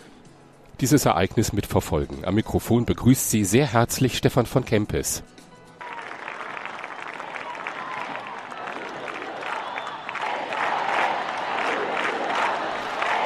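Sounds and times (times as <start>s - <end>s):
speech: 0.8s - 5.5s
large crowd of young people chanting in Spanish: 7.4s - 13.2s.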